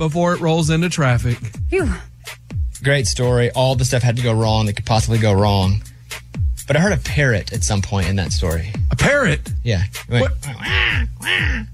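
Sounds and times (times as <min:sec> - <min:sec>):
speech: 0:00.0 - 0:02.1, 0:02.8 - 0:05.9, 0:06.7 - 0:11.7
baby crying: 0:10.5 - 0:11.7.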